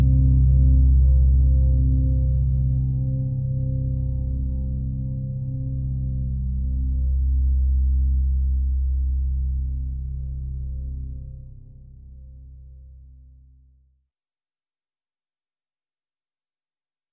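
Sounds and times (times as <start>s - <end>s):
drone: 0.0s - 12.2s.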